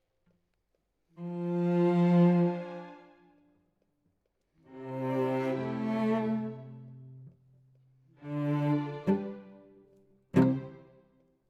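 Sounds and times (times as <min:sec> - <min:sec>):
cello solo: 0:01.2 - 0:03.2, 0:04.7 - 0:07.4, 0:08.2 - 0:11.0.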